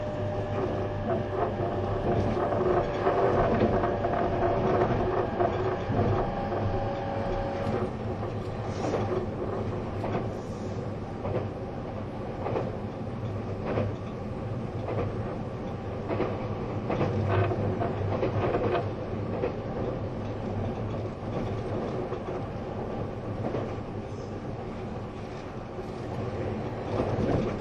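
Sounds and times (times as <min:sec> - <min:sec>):
E257 series Azusa train rumbling between Kofu and Matsumoto: 0:00.0 - 0:27.5.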